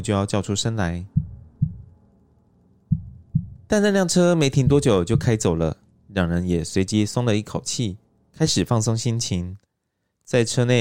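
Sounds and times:
speech: 0.0 - 1.2, 3.7 - 9.6, 10.3 - 10.7
racing heartbeat thumps: 1.1 - 1.9, 2.9 - 3.7, 4.6 - 5.4.

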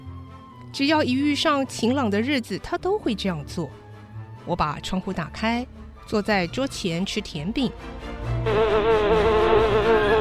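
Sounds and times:
speech: 0.7 - 3.8, 4.4 - 9.3
swarm of bees buzzing: 8.5 - 10.2.

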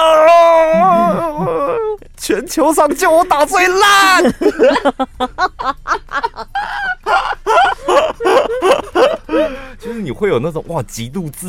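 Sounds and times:
voice imitating a small frustrated scream: 0.0 - 2.0, 3.6 - 4.3, 6.6 - 9.5
laughter: 0.7 - 1.9, 2.8 - 9.6
speech: 2.3 - 5.8, 10.2 - 11.4.

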